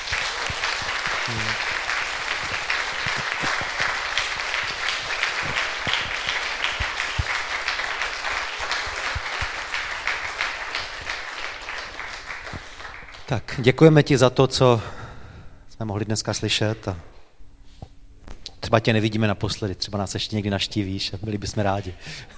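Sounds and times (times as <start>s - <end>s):
audience applause: 0.0s - 13.4s
speech: 1.3s - 1.8s, 13.3s - 15.0s, 15.8s - 17.1s, 18.7s - 22.3s.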